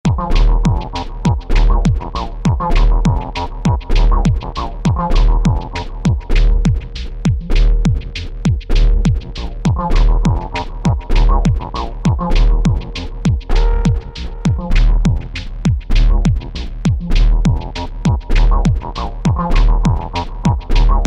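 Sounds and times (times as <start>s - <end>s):
downtempo music: 0.1s - 21.0s.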